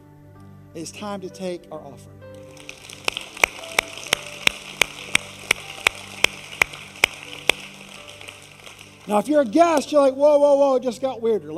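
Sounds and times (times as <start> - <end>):
speech: 0.7 - 2.2, 9.1 - 11.5
audience clapping in unison to a brisk beat: 2.4 - 9.9.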